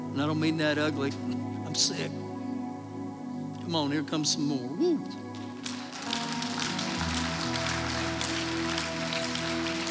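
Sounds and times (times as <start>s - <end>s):
speech: 0.2s - 2.2s, 3.7s - 5.4s
audience applauding: 5.3s - 9.8s.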